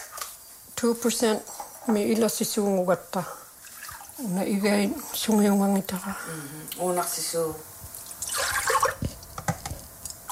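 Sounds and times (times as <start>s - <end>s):
speech: 0.8s - 3.4s, 4.2s - 7.8s
milk poured from cups into a pot while making bannock: 8.2s - 9.0s.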